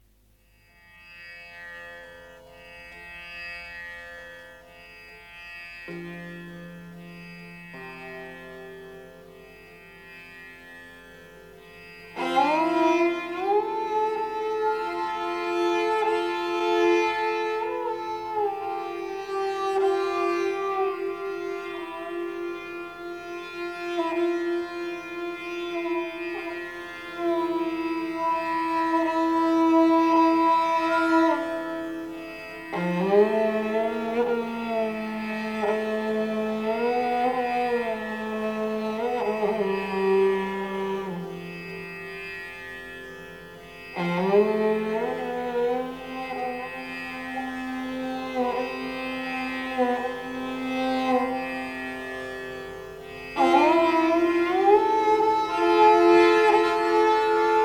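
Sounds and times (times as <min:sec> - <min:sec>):
Hindustani classical instrumental gat: 0:00.0 - 0:57.6.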